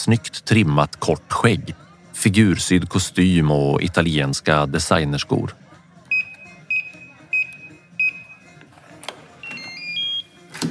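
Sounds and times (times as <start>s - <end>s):
speech: 0.0s - 5.6s
code entered on a door keypad: 6.1s - 8.6s, 9.4s - 10.5s.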